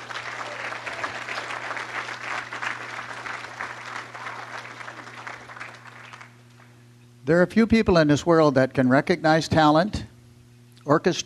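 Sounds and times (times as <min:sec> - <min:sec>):
audience applause: 0:00.0 - 0:06.7
faint low electrical hum: 0:00.0 - 0:11.2
speech: 0:07.3 - 0:10.1, 0:10.9 - 0:11.2.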